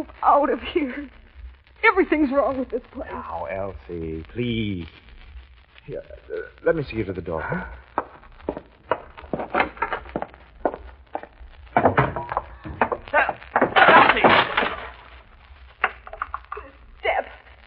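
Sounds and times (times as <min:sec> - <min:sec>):
speech: 0:00.0 - 0:01.2, 0:01.8 - 0:05.1, 0:05.9 - 0:07.8, 0:08.5 - 0:08.7
thumps: 0:07.8 - 0:17.2
wooden step cracking and splintering under a foot: 0:08.0 - 0:15.0.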